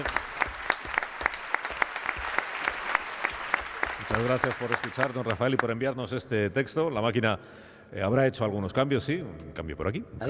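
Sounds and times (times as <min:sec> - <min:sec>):
crowd applause: 0:00.0 - 0:05.8
speech: 0:04.2 - 0:10.2.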